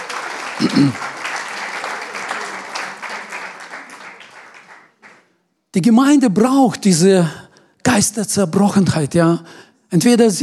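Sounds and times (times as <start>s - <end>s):
audience applause: 0.0s - 5.3s
speech: 0.6s - 1.1s, 5.8s - 7.4s, 8.0s - 10.4s.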